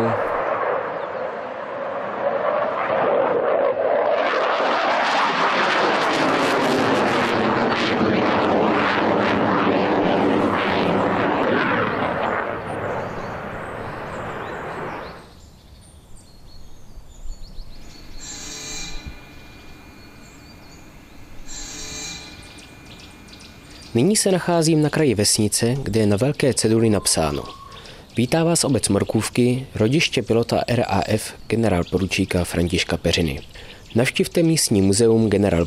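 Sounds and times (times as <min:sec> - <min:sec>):
propeller airplane roaring past overhead: 0:00.0 - 0:15.5, 0:16.7 - 0:28.1
speech: 0:24.0 - 0:27.6, 0:28.2 - 0:35.6.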